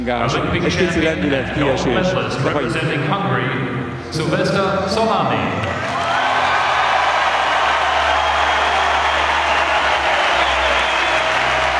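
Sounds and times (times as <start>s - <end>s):
speech: 0.0s - 5.8s
applause for the Olympic champion: 5.6s - 11.7s.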